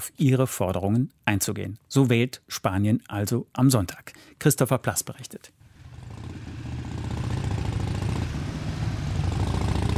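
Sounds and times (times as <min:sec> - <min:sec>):
speech: 0:00.0 - 0:06.3
heavy high-horsepower motorcycles setting off together: 0:05.6 - 0:09.9.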